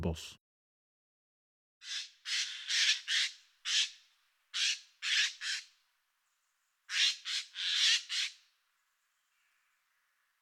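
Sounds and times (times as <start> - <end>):
Eurasian jay calling with hoarse screeches and rasping squawks: 1.8 - 5.8, 6.9 - 8.5.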